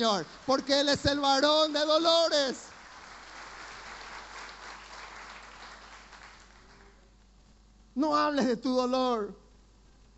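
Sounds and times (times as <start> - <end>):
speech: 0.0 - 2.7, 8.0 - 9.4
audience applause: 2.5 - 6.8.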